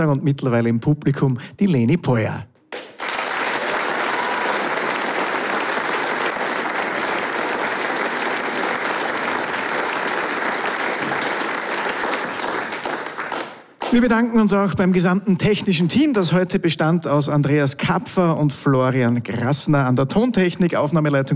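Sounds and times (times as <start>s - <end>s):
speech: 0.0s - 2.5s, 13.9s - 21.3s
large audience applause at concert end: 2.7s - 14.0s.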